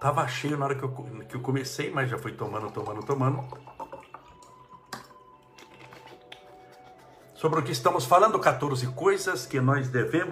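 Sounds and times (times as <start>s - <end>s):
speech: 0.0s - 3.8s, 7.4s - 10.2s
water pouring into a glass: 1.4s - 6.2s.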